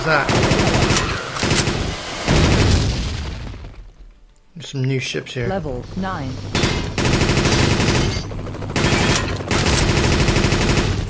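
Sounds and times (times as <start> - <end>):
speech: 0.0 - 0.6, 4.6 - 6.8
machine gun fire in a video game with bases and attacking ships: 0.3 - 3.9, 6.5 - 11.0.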